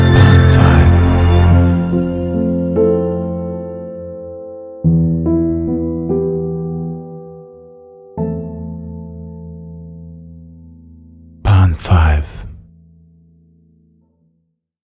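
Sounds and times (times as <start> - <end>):
emotional cello: 0.0 - 4.0
emotional piano: 0.0 - 14.4.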